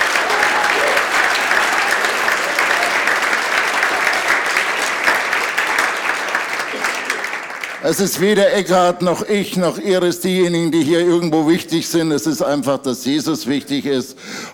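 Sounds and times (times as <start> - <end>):
audience applause: 0.0 - 8.4
speech: 7.9 - 14.5.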